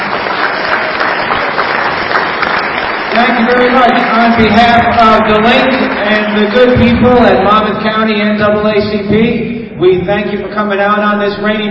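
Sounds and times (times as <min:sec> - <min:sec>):
audience applauding election candidates at a candidates' forum: 0:00.0 - 0:06.9
speech: 0:03.2 - 0:11.6.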